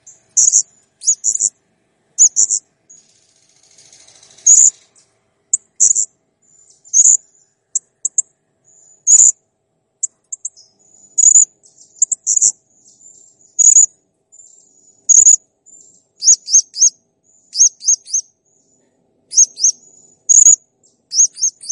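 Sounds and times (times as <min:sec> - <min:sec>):
blue-crowned hanging parrot chirping in full song: 0:00.1 - 0:01.5, 0:02.2 - 0:04.8, 0:05.6 - 0:09.4, 0:10.3 - 0:13.9, 0:15.1 - 0:15.4, 0:16.2 - 0:18.3, 0:19.3 - 0:21.6.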